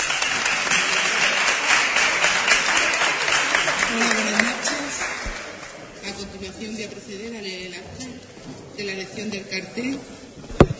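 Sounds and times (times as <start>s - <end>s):
audience applause: 0.0s - 6.0s
speech: 8.8s - 10.2s.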